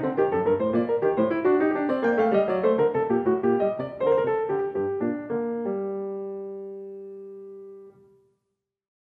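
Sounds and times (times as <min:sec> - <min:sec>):
baroque keyboard suite gigue in G minor: 0:00.0 - 0:06.3.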